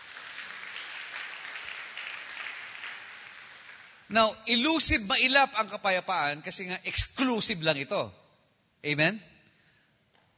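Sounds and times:
church congregation applauding during a sermon: 0.0 - 4.2
speech: 4.1 - 8.2, 8.8 - 9.3.

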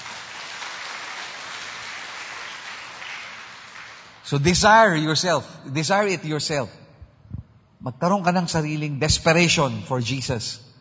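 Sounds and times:
congregation clapping in praise of the Lord during a church service: 0.0 - 4.6
speech: 4.3 - 6.8, 7.8 - 10.7.

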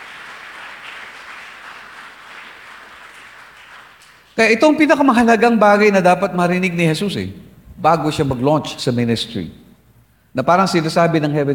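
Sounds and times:
church congregation applauding: 0.0 - 4.6
speech: 4.4 - 9.6, 10.3 - 11.5.

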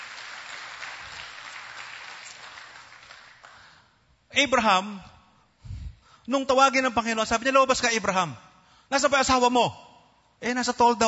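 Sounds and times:
audience applause at a preacher's sermon: 0.0 - 3.7
speech: 4.4 - 5.1, 6.3 - 9.8, 10.4 - 11.0.

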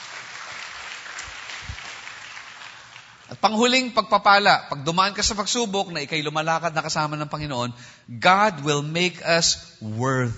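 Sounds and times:
church congregation applause: 0.0 - 3.8
speech: 3.3 - 10.3.

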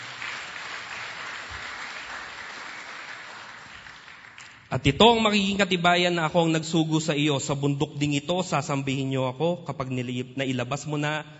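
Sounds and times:
church congregation applauding: 0.0 - 4.8
speech: 4.7 - 11.3.

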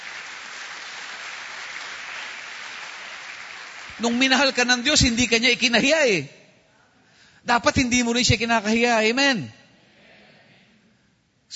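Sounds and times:
church congregation applauding in praise of God during a sermon: 0.0 - 5.5
speech: 4.0 - 6.4, 7.4 - 9.6.

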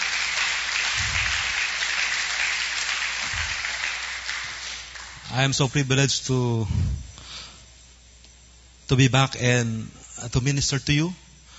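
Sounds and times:
congregation applause at a church worship service: 0.0 - 5.4
speech: 5.3 - 7.0, 8.9 - 11.2.

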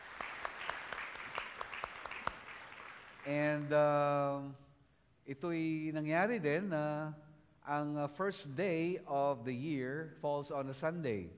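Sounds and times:
church congregation clapping during worship: 0.0 - 3.8
speech: 3.2 - 4.6, 5.3 - 11.3.

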